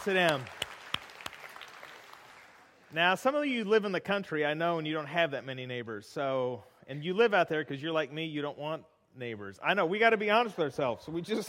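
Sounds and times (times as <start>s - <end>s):
speech: 0.0s - 0.6s, 2.9s - 11.4s
audience applause: 0.0s - 2.8s.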